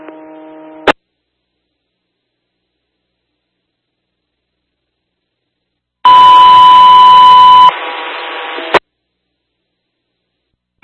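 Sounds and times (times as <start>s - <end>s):
radio dispatch alert tones: 6.1s - 7.7s.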